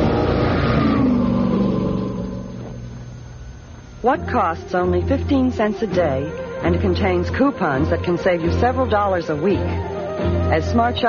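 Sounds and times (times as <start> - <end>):
Alfa Romeo car engine revving in an advert: 0.0 - 4.0
speech: 4.0 - 11.0.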